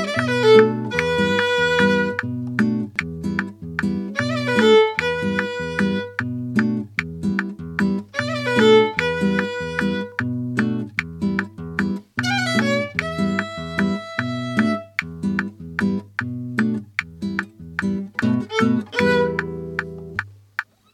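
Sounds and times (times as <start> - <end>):
violin: 0.0 - 3.4, 4.0 - 6.8, 8.0 - 10.7, 12.2 - 15.1, 18.1 - 20.2
guitar: 0.0 - 20.9
metronome clicking: 0.0 - 20.9.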